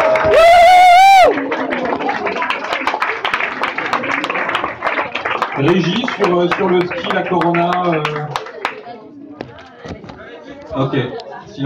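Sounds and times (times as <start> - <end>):
audience applause: 0.0 - 8.9
speech: 5.7 - 8.4, 10.8 - 11.6.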